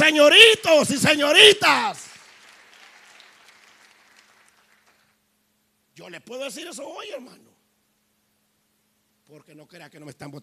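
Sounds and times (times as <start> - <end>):
speech: 0.1 - 2.1, 6.0 - 7.5, 9.3 - 10.4
audience clapping: 1.6 - 5.2.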